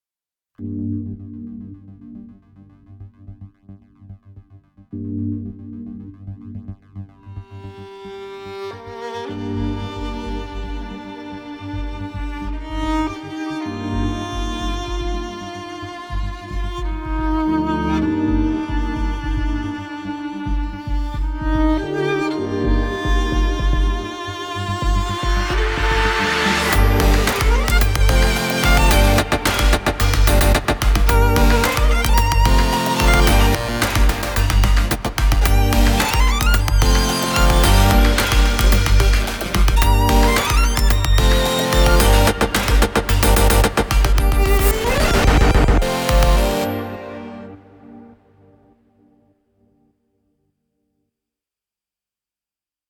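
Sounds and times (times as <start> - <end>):
full music track at 110 BPM: 7.3 - 49.1.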